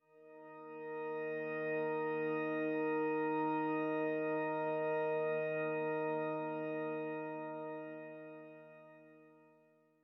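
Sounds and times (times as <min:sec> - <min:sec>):
church organ: 0:00.3 - 0:09.6.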